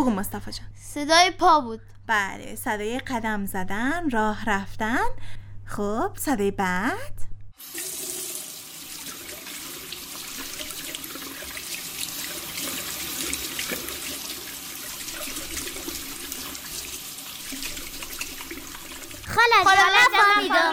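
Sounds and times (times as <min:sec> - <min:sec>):
speech: 0:00.0 - 0:08.0, 0:19.4 - 0:20.7
running tap while washing hands: 0:07.6 - 0:19.5
laughter: 0:19.3 - 0:20.7.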